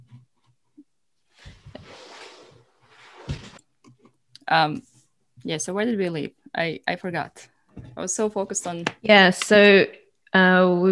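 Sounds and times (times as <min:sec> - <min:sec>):
curtain being drawn: 0:01.4 - 0:03.6
speech: 0:04.5 - 0:10.8.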